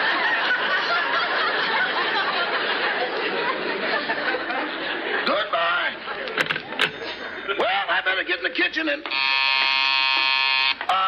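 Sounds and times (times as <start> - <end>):
laughter: 0.0 - 8.0
speech: 8.6 - 9.4
doorbell buzzing: 9.1 - 11.0.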